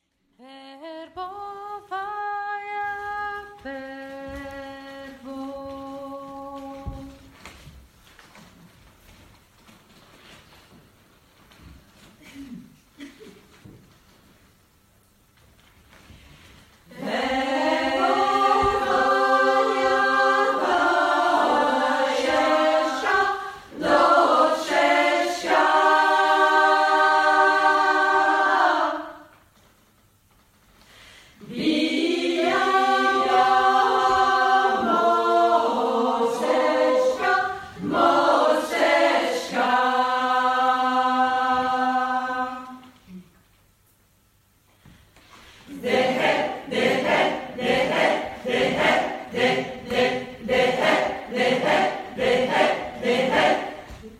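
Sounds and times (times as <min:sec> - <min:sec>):
traditional Ukrainian chant: 0:00.5 - 0:07.7, 0:16.9 - 0:29.3, 0:31.4 - 0:43.3, 0:45.7 - 0:54.1.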